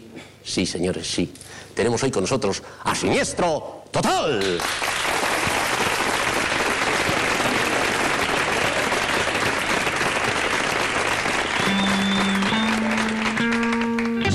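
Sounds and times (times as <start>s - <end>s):
speech: 0.5s - 5.0s
muffled crowd applause: 4.4s - 14.2s.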